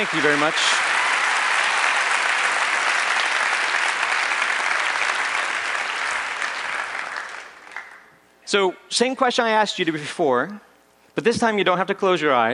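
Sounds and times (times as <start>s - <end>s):
speech: 0.0s - 0.9s, 8.5s - 12.5s
round of applause: 0.0s - 8.2s.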